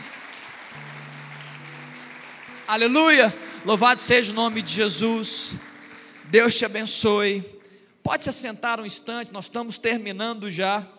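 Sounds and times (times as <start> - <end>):
audience clapping: 0.0 - 7.8
speech: 2.7 - 5.7, 6.3 - 10.9.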